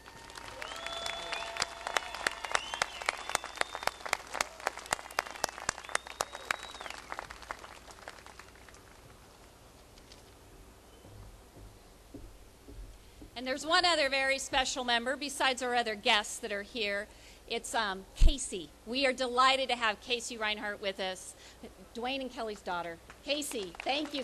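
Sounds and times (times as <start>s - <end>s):
audience applause: 0.0s - 9.0s, 23.6s - 24.2s
speech: 13.4s - 24.2s.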